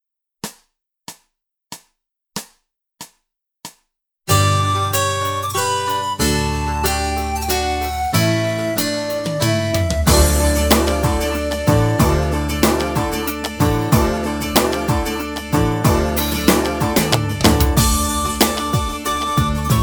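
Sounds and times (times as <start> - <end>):
slow French folk song: 4.3 - 19.8.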